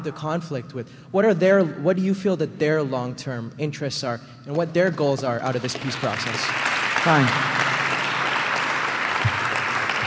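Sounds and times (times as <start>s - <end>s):
speech: 0.0s - 7.7s
audience applause: 5.6s - 10.0s.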